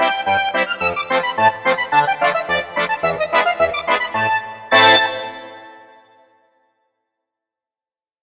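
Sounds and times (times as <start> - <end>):
old-world polka on synthesizer: 0.0 - 6.2.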